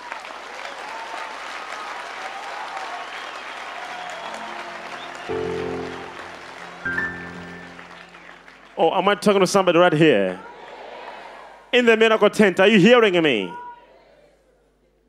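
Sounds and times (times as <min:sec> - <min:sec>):
audience clapping hands: 0:00.0 - 0:11.0
speech: 0:08.8 - 0:10.5, 0:11.7 - 0:13.6.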